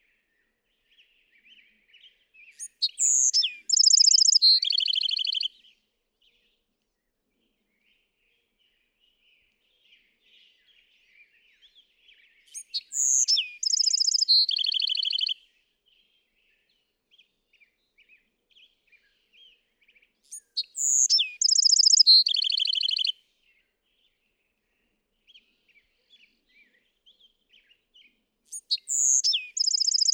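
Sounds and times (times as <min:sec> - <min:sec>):
Bewick's wren song: 0:02.5 - 0:05.6, 0:12.5 - 0:15.4, 0:20.2 - 0:23.2, 0:28.5 - 0:30.1.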